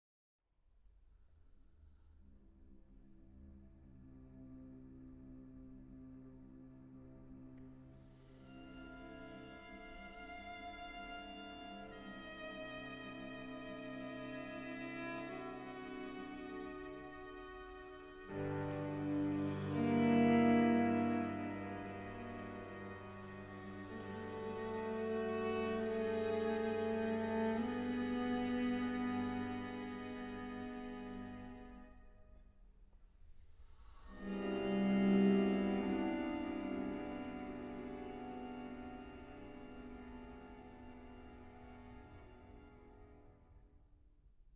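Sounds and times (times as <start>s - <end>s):
string quartet playing short pieces: 8.5s - 31.8s, 34.1s - 42.6s.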